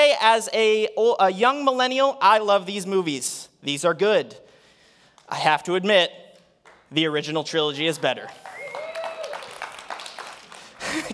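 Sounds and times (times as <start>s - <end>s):
speech: 0.1s - 4.4s, 5.3s - 6.2s, 6.9s - 8.5s
loud clapping from audience: 5.1s - 5.4s, 6.3s - 7.0s, 7.9s - 11.1s.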